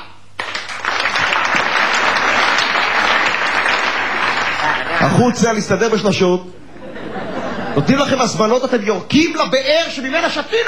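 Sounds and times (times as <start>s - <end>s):
group of people clapping their hands in unison: 0.0s - 5.0s
laughter: 4.3s - 5.3s, 6.6s - 8.4s
speech: 5.0s - 6.6s, 7.7s - 10.6s.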